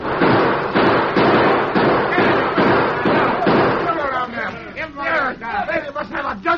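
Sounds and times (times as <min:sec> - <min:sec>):
gunfire in a radio drama shootout: 0:00.0 - 0:04.3
people talking: 0:02.1 - 0:06.5.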